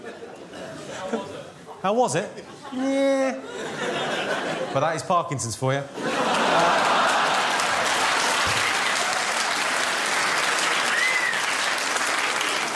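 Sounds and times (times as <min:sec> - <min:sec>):
laughter: 0:00.0 - 0:01.5, 0:02.3 - 0:05.0, 0:05.9 - 0:09.4
speech: 0:01.8 - 0:04.1, 0:04.7 - 0:06.9
audience clapping: 0:06.1 - 0:12.7.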